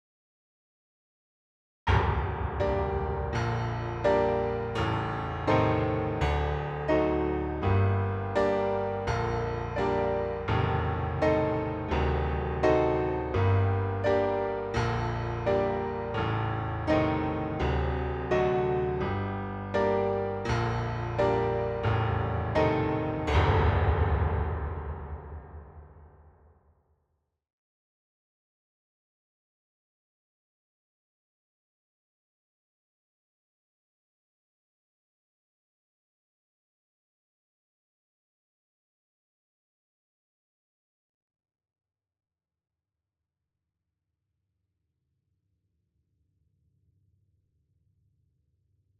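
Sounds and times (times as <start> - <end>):
mini grand piano: 1.9 - 26.8.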